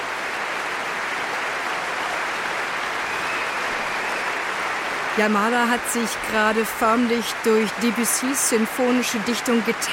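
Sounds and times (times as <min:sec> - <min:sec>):
concert audience applauding: 0:00.0 - 0:09.9
concert audience cheering: 0:00.0 - 0:09.9
scattered whistles: 0:03.0 - 0:04.3
speech: 0:05.2 - 0:09.9.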